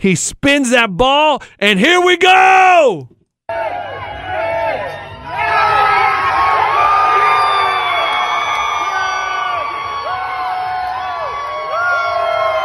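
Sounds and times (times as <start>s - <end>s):
speech: 0.0s - 4.1s
crowd cheering: 2.9s - 12.6s.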